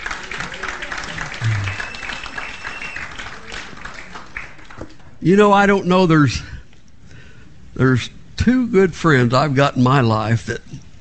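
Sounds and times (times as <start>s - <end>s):
audience applauding: 0.0s - 4.8s
speech: 5.2s - 6.5s, 7.8s - 10.8s.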